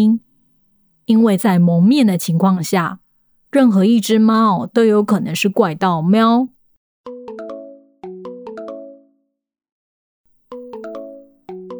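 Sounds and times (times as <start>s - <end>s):
speech: 0.0s - 0.2s, 1.1s - 7.2s
phone ringtone: 10.5s - 11.7s.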